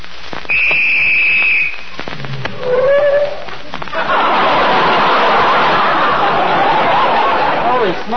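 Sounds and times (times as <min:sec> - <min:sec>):
whistle blown: 0:00.5 - 0:01.9
laughter: 0:03.9 - 0:08.1.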